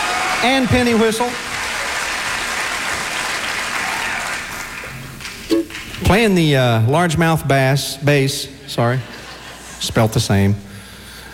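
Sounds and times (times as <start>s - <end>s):
crowd clapping: 0.0s - 6.2s
speech: 0.4s - 1.5s, 6.0s - 9.2s, 9.8s - 10.7s.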